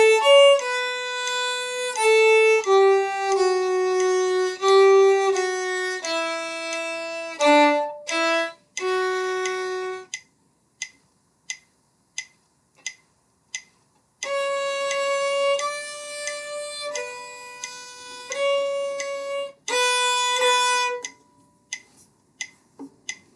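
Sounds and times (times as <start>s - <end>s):
violin: 0.0s - 10.2s, 14.2s - 21.1s.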